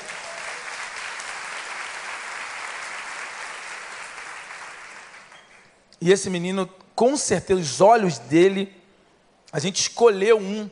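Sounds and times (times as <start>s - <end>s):
audience applause: 0.0s - 5.6s
speech: 6.0s - 8.8s, 9.5s - 10.7s.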